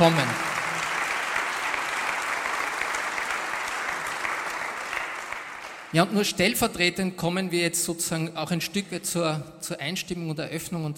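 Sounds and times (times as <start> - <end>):
speech: 0.0 - 0.3, 5.9 - 10.9
audience applause welcoming political representatives at a public event: 0.0 - 6.0.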